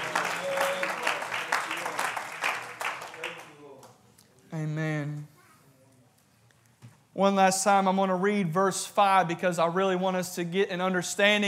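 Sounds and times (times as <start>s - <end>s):
crowd clapping: 0.0s - 4.0s
speech: 7.2s - 11.4s.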